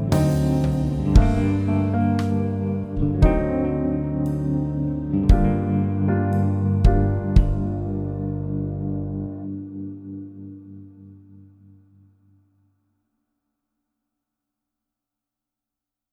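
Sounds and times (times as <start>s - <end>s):
jazz backing track: 0.0s - 10.8s.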